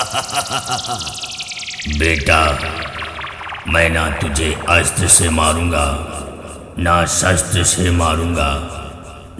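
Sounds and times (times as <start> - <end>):
DJ remix music: 0.0 - 6.8
competition intro dialogue: 0.0 - 8.6.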